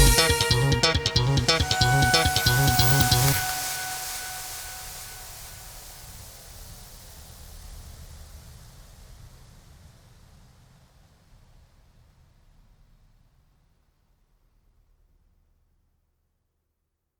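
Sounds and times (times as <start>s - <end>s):
jazz music: 0.0s - 5.8s.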